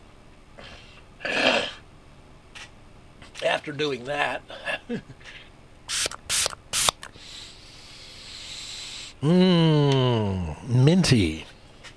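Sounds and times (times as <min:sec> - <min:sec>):
speech: 0:03.6 - 0:05.4, 0:09.2 - 0:11.5
throat spray pump bottle spritzes: 0:05.9 - 0:07.1.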